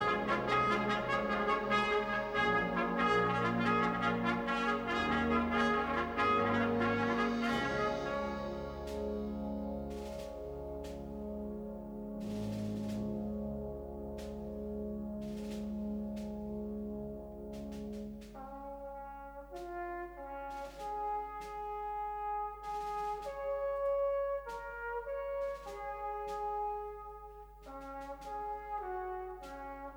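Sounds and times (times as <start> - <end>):
trumpet corps playing: 0.0 - 29.9.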